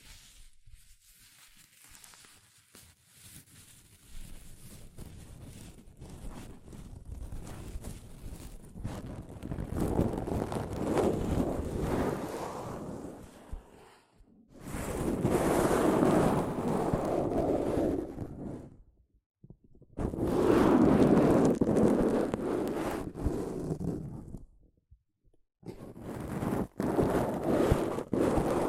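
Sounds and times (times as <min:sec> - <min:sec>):
soft fabric brushing against a microphone: 0:00.0 - 0:14.0, 0:14.6 - 0:18.7, 0:20.0 - 0:24.4, 0:25.7 - 0:28.6.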